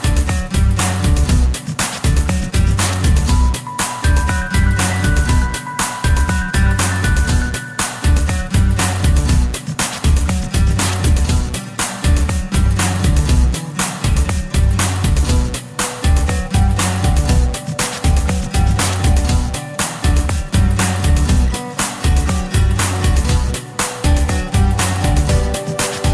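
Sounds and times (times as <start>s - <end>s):
retro pop music mix: 0.0s - 26.1s.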